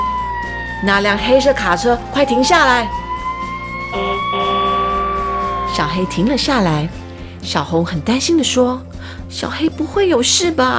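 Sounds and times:
police car siren wailing with high-pitched electronic tones: 0.0 - 7.0
speech: 0.8 - 3.0, 5.8 - 10.7.

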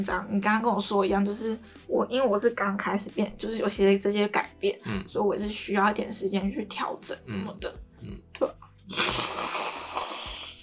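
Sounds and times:
speech: 0.0 - 9.4
person blowing nose: 8.9 - 10.6.

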